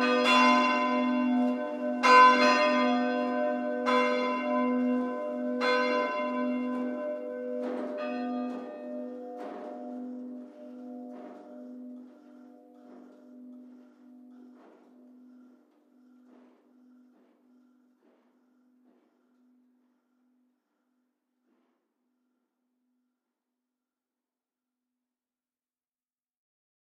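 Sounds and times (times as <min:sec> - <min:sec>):
church bells ringing in Ober-Breidenbach: 0:00.0 - 0:20.8.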